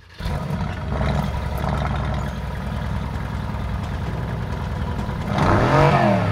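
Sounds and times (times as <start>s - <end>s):
biturbo car engine starting and revving: 0.1s - 6.3s.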